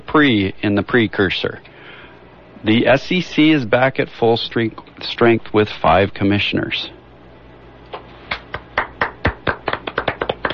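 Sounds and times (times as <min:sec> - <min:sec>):
speech: 0:00.2 - 0:01.7, 0:02.6 - 0:07.0
four radio amateurs clapping: 0:07.9 - 0:10.5.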